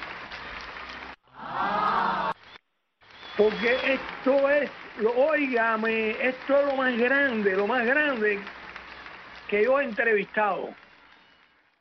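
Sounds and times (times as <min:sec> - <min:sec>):
applause sound effect: 0:00.0 - 0:11.8
crowd cheering and whooping: 0:01.3 - 0:02.4
speech: 0:03.4 - 0:08.6, 0:09.5 - 0:10.8.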